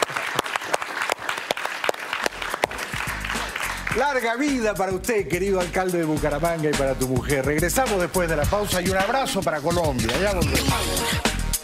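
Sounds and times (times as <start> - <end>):
studio audience applause: 0.0 - 4.1
speech: 4.0 - 11.2.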